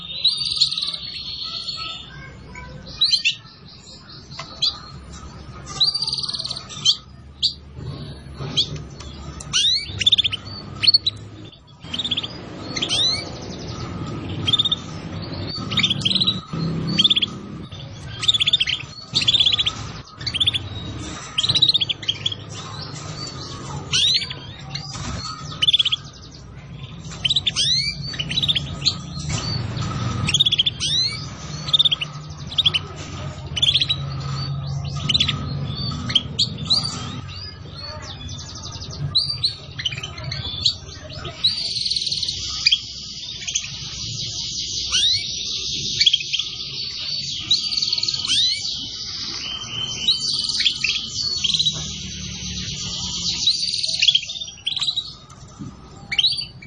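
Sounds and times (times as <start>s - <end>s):
Atlantic canary singing: 0.0s - 56.6s.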